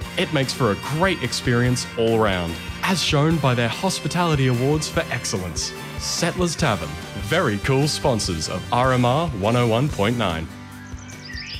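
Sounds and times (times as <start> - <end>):
speech: 0.2 - 10.6
birds chirping in a garden: 8.6 - 11.5.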